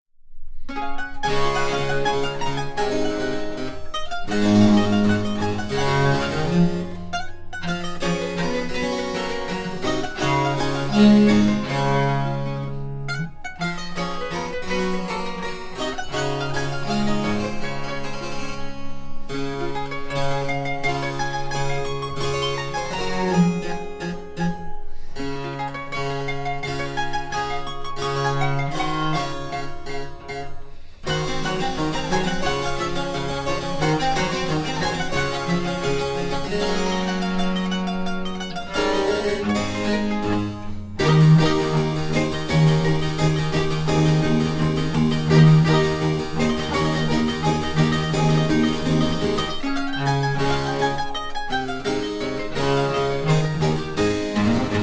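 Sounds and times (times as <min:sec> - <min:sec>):
sonata in D major: 0:00.0 - 0:54.8.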